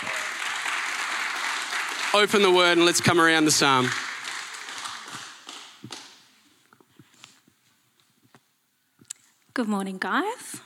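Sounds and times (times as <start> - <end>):
round of applause: 0.0 - 6.2
speech: 2.1 - 4.1, 9.6 - 10.6.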